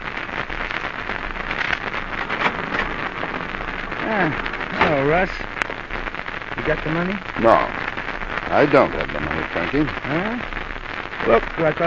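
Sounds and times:
roar of ocean surf: 0.8 - 9.2
speech: 4.1 - 5.5, 6.6 - 7.8, 8.4 - 10.6, 11.2 - 11.8.

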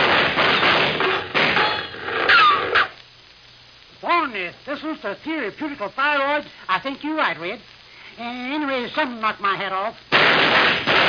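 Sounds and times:
gunshots: 0.0 - 2.9, 10.1 - 11.0
speech: 4.5 - 10.9.

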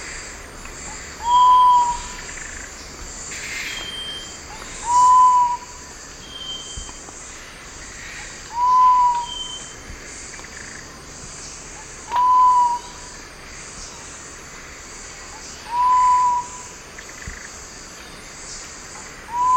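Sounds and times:
sapphire quail-dove two-part whistled hoot: 1.2 - 2.2, 3.8 - 6.9, 8.5 - 9.8, 12.1 - 13.1, 15.6 - 16.7, 19.3 - 19.5.

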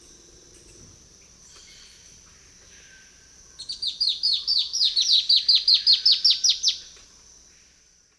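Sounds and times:
Myrmeciza atrothorax duet: 3.6 - 6.9.

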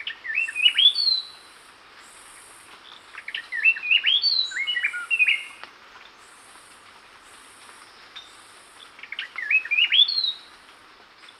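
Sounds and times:
gray-breasted wood-wren whistled phrases: 0.2 - 1.3, 3.4 - 5.5, 9.2 - 10.4.

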